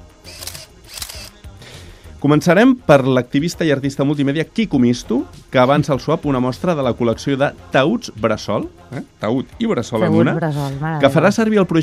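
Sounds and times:
camera shutter click: 0:00.2 - 0:01.4
speech: 0:02.2 - 0:11.8.

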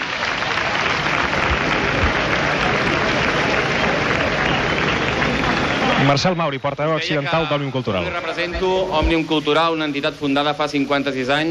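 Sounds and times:
crowd applauding: 0:00.0 - 0:08.4
speech: 0:06.0 - 0:11.4.

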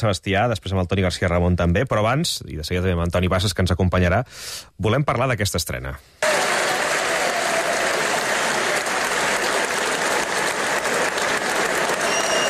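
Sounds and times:
speech: 0:00.0 - 0:06.3
festival audience ovation applause: 0:06.2 - 0:12.4.

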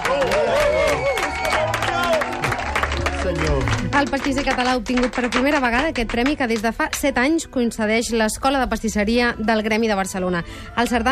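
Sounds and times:
applause: 0:00.0 - 0:07.1
speech: 0:04.0 - 0:11.0.

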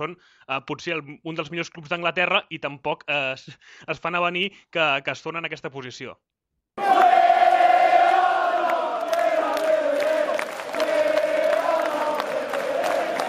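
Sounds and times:
speech: 0:00.0 - 0:07.0
football fans shouts and claps: 0:06.8 - 0:13.2
large crowd of football fans chanting in unison in a stadium: 0:06.8 - 0:13.2.

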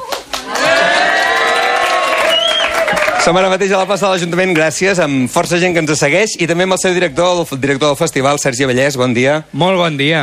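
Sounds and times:
crowd cheering at a legends festival in a town hall square: 0:00.0 - 0:04.0
speech: 0:03.2 - 0:10.2.

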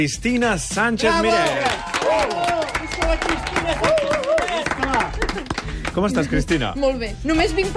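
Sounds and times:
speech: 0:00.0 - 0:04.3, 0:06.0 - 0:07.7
audience applause: 0:01.3 - 0:06.2.

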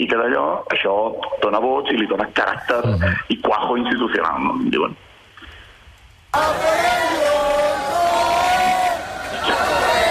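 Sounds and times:
speech: 0:00.0 - 0:05.1, 0:06.3 - 0:07.2
street protesters chanting: 0:06.3 - 0:10.1.

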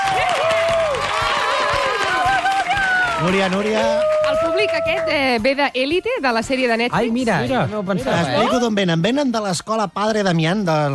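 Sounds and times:
crowd applauding and cheering: 0:00.0 - 0:05.6
speech: 0:03.2 - 0:10.9.

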